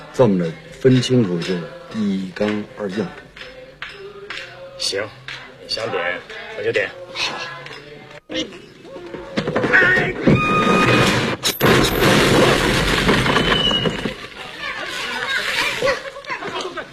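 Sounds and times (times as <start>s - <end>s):
speech: 0.2s - 3.2s, 4.8s - 7.4s, 8.3s - 8.7s, 9.7s - 11.0s
loudspeaker box falling and crashing: 9.2s - 14.4s.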